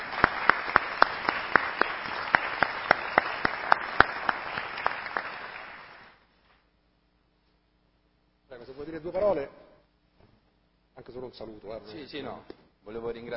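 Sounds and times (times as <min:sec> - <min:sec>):
audience applause: 0:00.0 - 0:06.2
speech: 0:08.8 - 0:09.6, 0:11.1 - 0:13.3.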